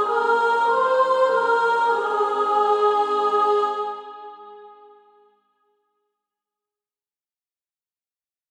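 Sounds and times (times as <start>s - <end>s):
female choir soprano section singing: 0.0s - 5.0s.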